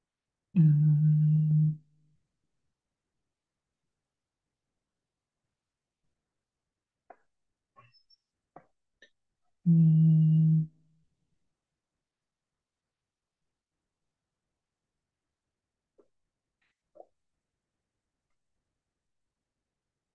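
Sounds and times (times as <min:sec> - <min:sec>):
low steady humming mmm like a cow's moo: 0:00.6 - 0:01.8, 0:09.7 - 0:10.7.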